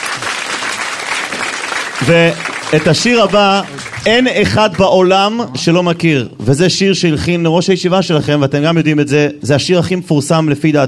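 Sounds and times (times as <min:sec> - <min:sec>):
concert audience applause for a guest singer: 0:00.0 - 0:04.4
speech: 0:02.0 - 0:10.8.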